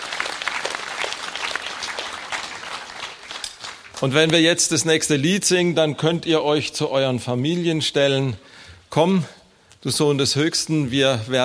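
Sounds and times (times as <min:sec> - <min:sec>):
room full of people clapping: 0:00.0 - 0:04.8
speech: 0:04.0 - 0:11.4.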